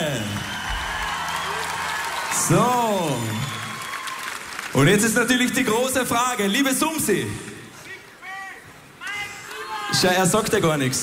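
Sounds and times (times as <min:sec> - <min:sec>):
audience applause: 0:00.0 - 0:06.1
brief vocal cheer: 0:00.0 - 0:06.6, 0:09.0 - 0:10.3
speech: 0:02.5 - 0:03.5, 0:04.8 - 0:07.5, 0:10.0 - 0:11.0.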